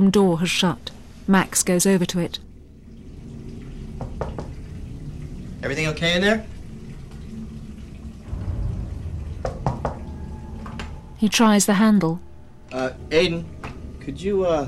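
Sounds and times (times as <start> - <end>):
speech: 0.0 - 2.4, 5.6 - 6.5, 11.2 - 13.5, 14.1 - 14.6
water pouring from under a door: 2.1 - 14.6.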